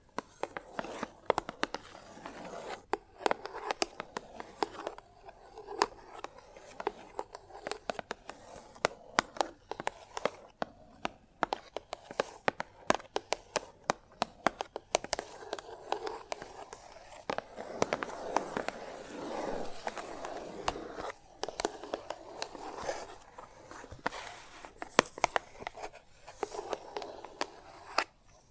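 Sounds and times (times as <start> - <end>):
chalk tapping on a hard surface: 0.0 - 28.5
chalk scratching on a hard surface: 0.2 - 10.6, 15.1 - 28.4.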